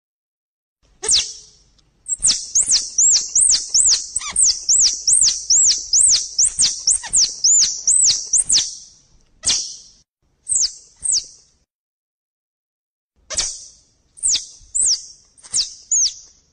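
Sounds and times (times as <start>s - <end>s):
squirrel chattering: 1.0s - 1.5s, 2.1s - 8.7s.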